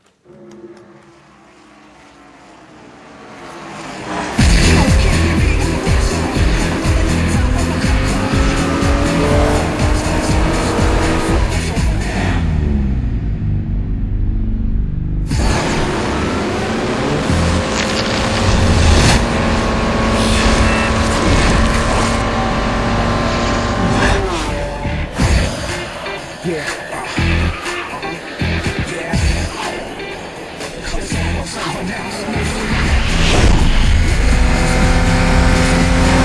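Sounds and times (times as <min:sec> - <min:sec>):
race cars roaring in the video game Forza Motorsport 2: 0:00.0 - 0:36.2
race car tires squealing: 0:00.2 - 0:12.4, 0:15.3 - 0:36.2.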